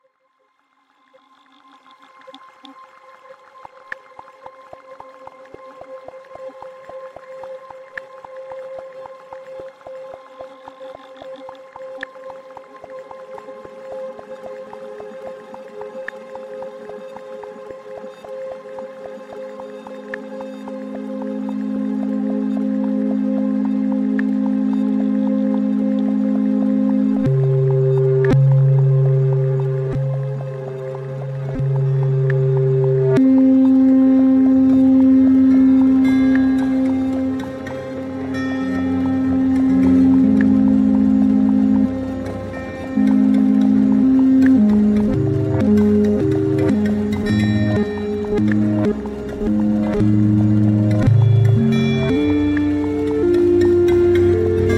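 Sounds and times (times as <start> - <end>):
machine music: 16.6 - 54.7.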